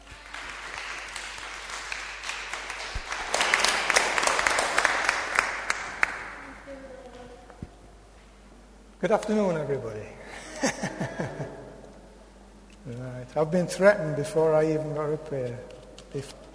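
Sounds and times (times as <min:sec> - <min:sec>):
audience applause welcoming a preacher at a church gathering: 0:00.0 - 0:06.4
speech: 0:09.0 - 0:11.6, 0:12.8 - 0:16.4
laughter: 0:10.3 - 0:11.8.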